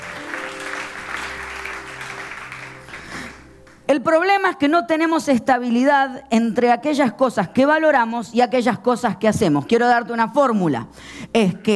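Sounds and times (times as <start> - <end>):
audience applauding loudly: 0.0 - 3.9
speech: 3.9 - 11.7.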